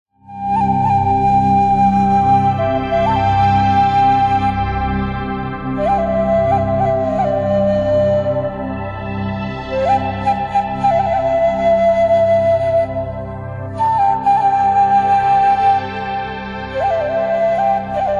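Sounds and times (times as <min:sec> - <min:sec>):
oriental flutes: 0:00.2 - 0:18.1.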